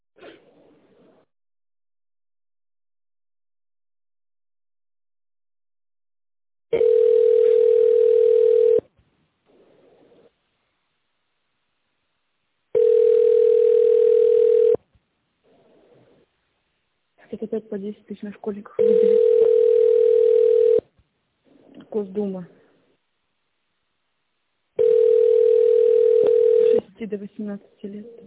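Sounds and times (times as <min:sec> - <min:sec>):
telephone line waiting tone: 0:06.8 - 0:08.8, 0:12.8 - 0:14.8, 0:18.8 - 0:20.8, 0:24.8 - 0:26.8
speech: 0:17.5 - 0:19.5, 0:22.0 - 0:22.6, 0:27.0 - 0:28.2.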